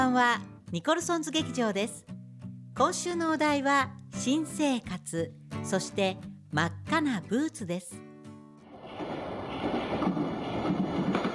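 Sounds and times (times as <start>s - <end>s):
speech: 0.1s - 2.2s, 2.8s - 8.0s
train passing on nearby railway tracks: 8.7s - 11.3s.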